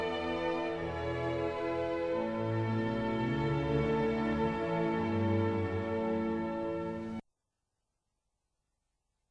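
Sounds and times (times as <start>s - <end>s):
orchestra: 0.0s - 7.2s.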